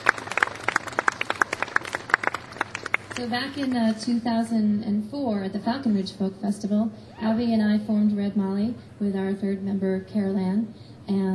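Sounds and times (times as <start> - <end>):
audience applause: 0.0 - 4.0
speech: 3.2 - 11.3.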